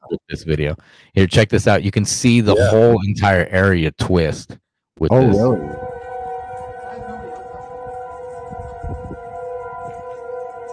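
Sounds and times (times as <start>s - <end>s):
speech: 0.2s - 5.8s
tornado siren wailing: 5.1s - 10.7s.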